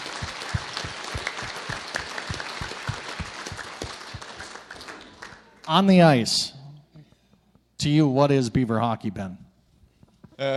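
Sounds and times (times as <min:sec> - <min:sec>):
audience applause: 0:00.0 - 0:05.6
speech: 0:05.7 - 0:06.6, 0:07.8 - 0:09.4, 0:10.4 - 0:10.5.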